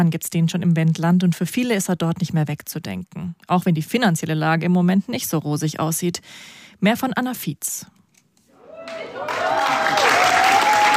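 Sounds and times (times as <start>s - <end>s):
speech: 0.0s - 8.0s
thunderous applause for youth theatre in Kulturverein Plattenlase, Wendland: 8.8s - 10.9s.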